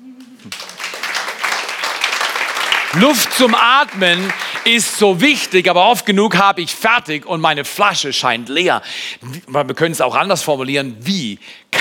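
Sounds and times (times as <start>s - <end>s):
audience applause: 0.3s - 5.6s
speech: 2.9s - 11.6s.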